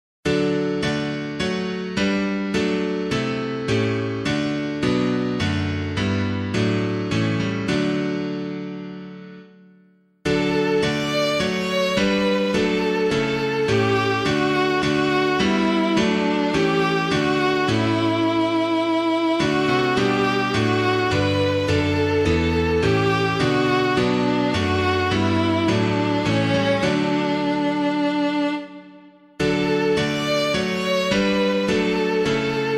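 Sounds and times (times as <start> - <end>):
piano: 0.2 - 32.7.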